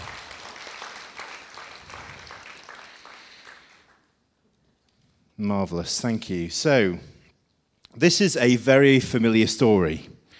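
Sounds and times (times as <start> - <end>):
audience applause: 0.0 - 4.1
speech: 5.4 - 7.1, 8.0 - 10.2.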